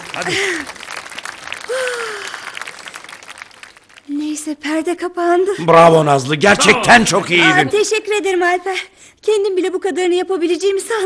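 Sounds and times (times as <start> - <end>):
theatre audience applause: 0.0 - 4.1
speech: 0.2 - 0.8, 1.7 - 2.3, 4.1 - 11.0.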